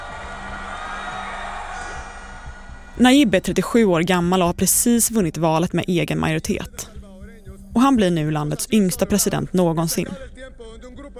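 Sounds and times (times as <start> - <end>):
crowd cheering for Nayib Bukele, newly elected president: 0.0 - 4.0
speech: 3.0 - 7.0, 7.8 - 11.1.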